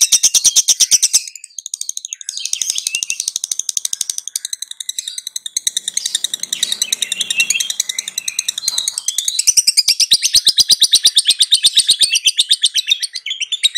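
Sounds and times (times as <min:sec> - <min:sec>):
masteran lovebird: 0:00.0 - 0:13.7.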